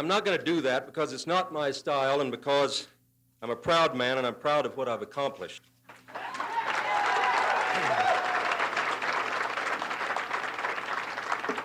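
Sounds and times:
speech: 0:00.0 - 0:06.3
audience applause: 0:06.1 - 0:11.6.

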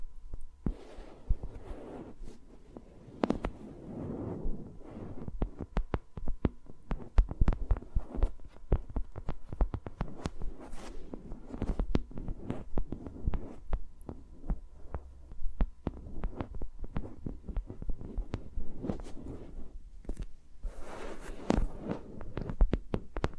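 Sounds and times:
faint steady hum: 0:00.0 - 0:23.3
soft low thumps and rumbles: 0:00.2 - 0:02.6, 0:03.2 - 0:20.8
fingers tapping and rubbing around microphones: 0:05.1 - 0:20.4, 0:21.1 - 0:23.3.

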